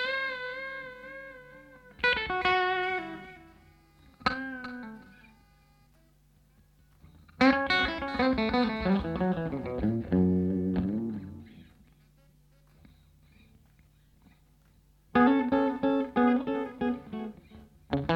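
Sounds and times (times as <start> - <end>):
guitar with echo and reverb: 0.0 - 5.6, 7.0 - 11.9, 15.1 - 18.1.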